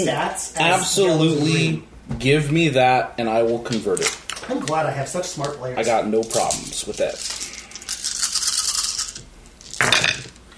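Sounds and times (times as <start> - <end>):
speech: 0.0 - 7.5
dice being rolled: 5.4 - 10.4.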